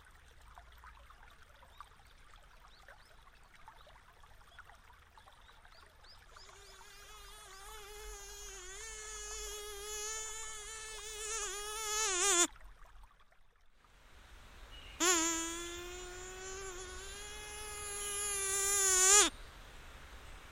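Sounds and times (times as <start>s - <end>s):
mosquito flight whine: 6.5s - 12.5s, 15.0s - 19.3s.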